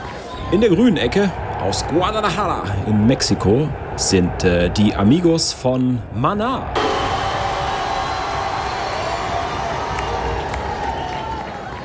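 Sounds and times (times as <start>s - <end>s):
speech: 0.5s - 6.9s
applause: 7.8s - 11.8s.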